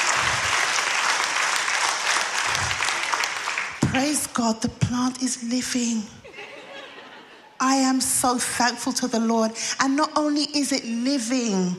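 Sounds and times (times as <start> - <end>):
people clapping: 0.0 - 4.2
speech: 4.0 - 6.2, 7.6 - 11.7
laughter: 6.2 - 7.6.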